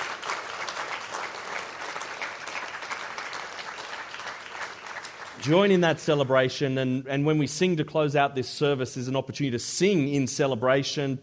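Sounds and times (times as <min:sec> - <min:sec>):
crowd applause: 0:00.0 - 0:05.8
speech: 0:05.4 - 0:11.2.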